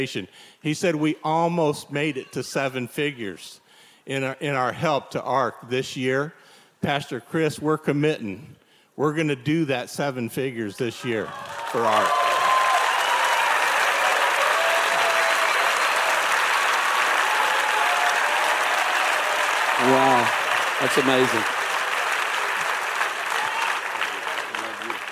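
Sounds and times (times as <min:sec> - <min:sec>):
speech: 0:00.0 - 0:12.3, 0:20.8 - 0:21.6
audience applause: 0:11.0 - 0:25.1.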